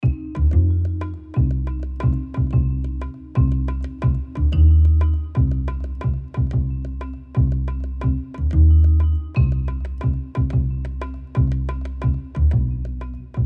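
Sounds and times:
eight-bar music loop: 0:00.0 - 0:13.4.

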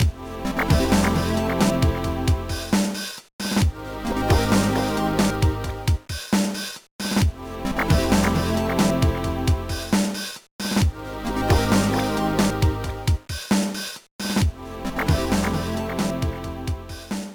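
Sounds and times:
background music: 0:00.0 - 0:03.0, 0:03.6 - 0:06.1, 0:07.2 - 0:10.2, 0:10.8 - 0:13.3, 0:14.4 - 0:17.3.

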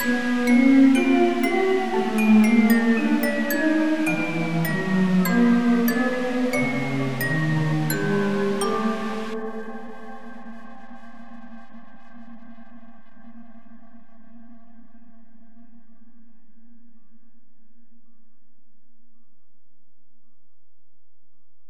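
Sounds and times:
retry jingle: 0:00.0 - 0:10.2.

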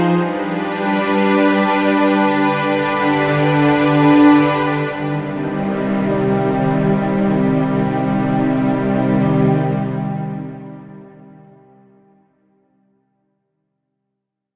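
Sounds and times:
sad musical sting: 0:00.2 - 0:11.6.

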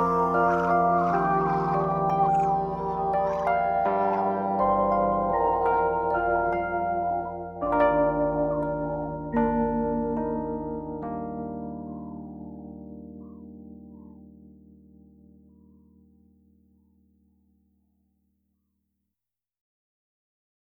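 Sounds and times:
off vocal instrumental music: 0:00.0 - 0:14.7.

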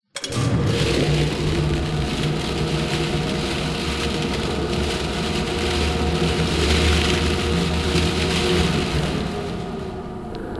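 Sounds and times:
plastic ball machine: 0:00.1 - 0:10.4.

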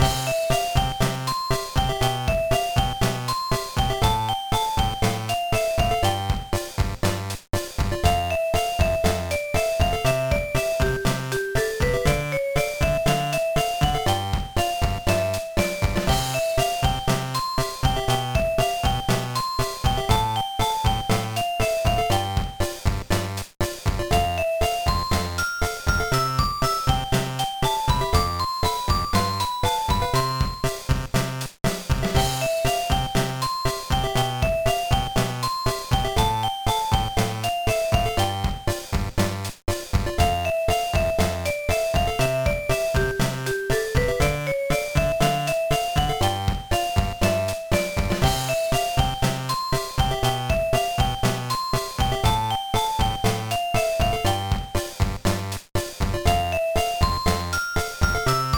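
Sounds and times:
background music: 0:00.0 - 0:58.5.

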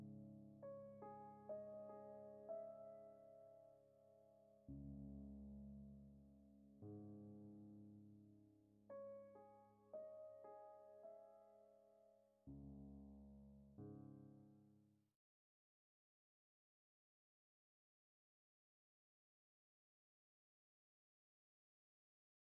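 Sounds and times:
music: 0:00.0 - 0:15.1.

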